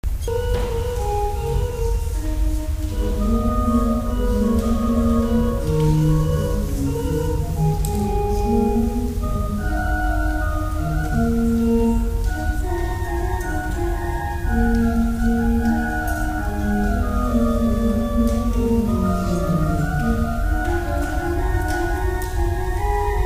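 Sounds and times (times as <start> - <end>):
organ: 0.1 - 23.2.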